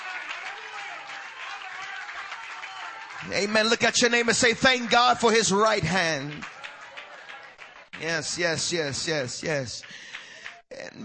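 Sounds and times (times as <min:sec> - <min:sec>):
audience clapping hands: 0:00.0 - 0:10.7
speech: 0:03.2 - 0:06.5, 0:08.0 - 0:10.1.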